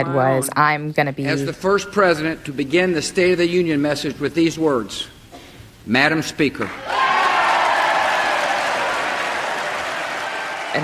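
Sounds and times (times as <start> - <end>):
speech: 0.0 - 5.2, 5.8 - 7.0
lawmakers applauding in chamber: 6.6 - 10.8.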